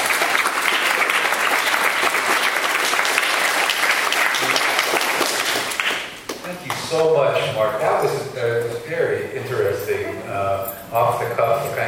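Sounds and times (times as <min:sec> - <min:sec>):
audience applause: 0:00.0 - 0:07.1
speech: 0:06.9 - 0:11.8.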